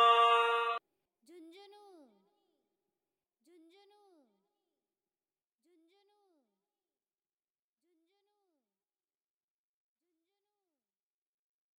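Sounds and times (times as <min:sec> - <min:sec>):
Haryanvi DJ song hard remix: 0:00.0 - 0:00.8.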